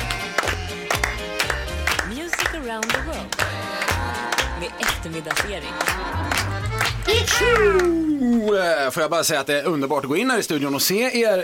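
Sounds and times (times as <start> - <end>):
hands clapping along to music: 0.0 - 8.0
speech: 2.7 - 3.6, 4.6 - 11.4.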